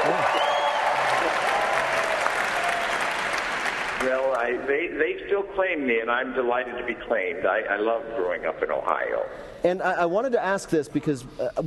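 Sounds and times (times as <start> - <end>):
audience applauding: 0.0 - 4.5
speech: 4.1 - 11.6.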